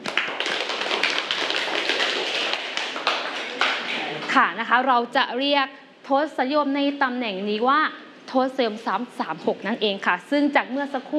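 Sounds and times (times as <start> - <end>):
classroom applause: 0.0 - 4.3
speech: 4.4 - 11.1.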